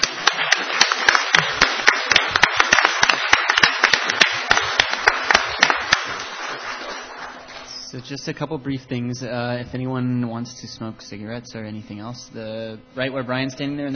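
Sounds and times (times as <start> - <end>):
audience applause: 0.0 - 7.7
speech: 7.9 - 13.9.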